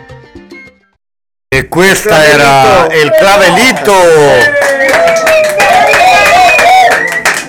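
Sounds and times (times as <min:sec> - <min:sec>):
speech: 0:01.6 - 0:05.9
live audience applause: 0:02.0 - 0:07.4.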